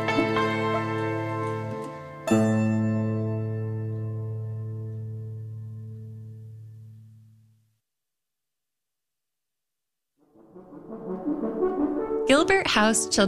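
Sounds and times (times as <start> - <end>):
traditional Chinese music: 0.0 - 4.1, 10.4 - 13.2.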